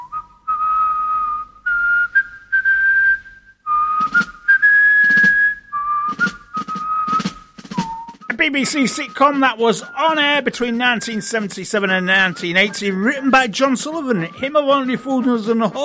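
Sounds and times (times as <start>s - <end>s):
person whistling a jaunty sitcom theme tune: 0.0s - 14.5s
percussive clicks and thumps: 4.0s - 4.4s, 6.1s - 8.4s
speech: 8.4s - 15.8s.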